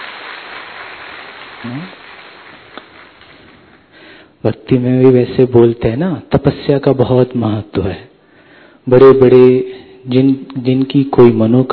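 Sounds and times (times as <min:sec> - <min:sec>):
audience applause: 0:00.0 - 0:04.0
speech: 0:01.6 - 0:02.1, 0:04.4 - 0:08.1, 0:08.8 - 0:11.7.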